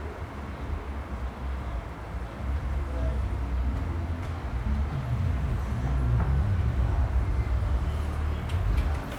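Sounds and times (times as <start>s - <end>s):
few people in a hall: 0.1s - 9.1s
heavy traffic outside: 2.5s - 9.1s.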